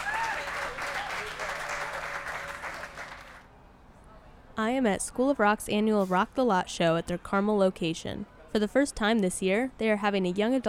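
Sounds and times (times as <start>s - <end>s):
audience applause: 0.0s - 3.4s
speech: 4.6s - 10.6s.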